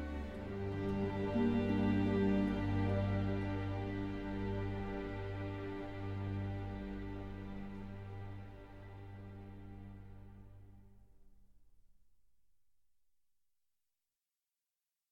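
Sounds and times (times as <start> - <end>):
strings: 0.0 - 11.2.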